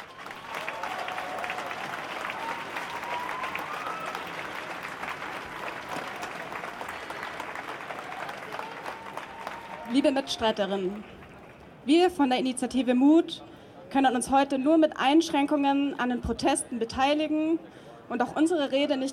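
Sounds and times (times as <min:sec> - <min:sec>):
crowd applause: 0:00.0 - 0:11.6
speech: 0:09.9 - 0:11.2, 0:11.9 - 0:19.1.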